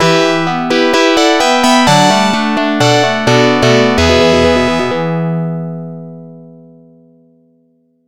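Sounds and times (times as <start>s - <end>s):
game over jingle: 0.0s - 5.4s.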